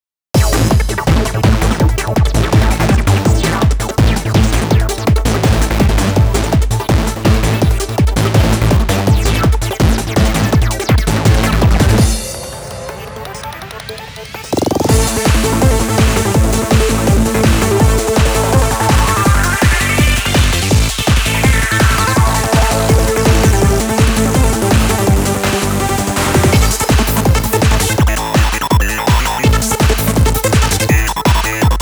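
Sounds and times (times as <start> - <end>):
pure analog synthesizer: 0.4 - 31.8.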